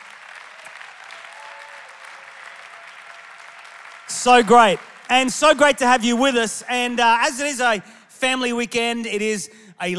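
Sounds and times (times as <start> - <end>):
audience applause in the building for people joining online: 0.0 - 6.1
speech: 4.2 - 9.9.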